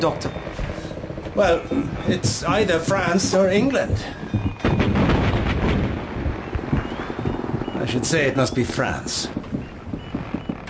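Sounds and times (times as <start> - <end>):
speech: 0.0 - 0.5, 1.4 - 4.2, 7.9 - 9.4
cannon fire from the shore: 4.5 - 10.6.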